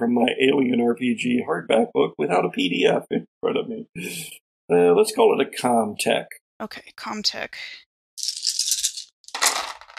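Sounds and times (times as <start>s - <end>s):
speech: 0.0s - 7.8s
dice rattling and clattering: 8.2s - 9.9s.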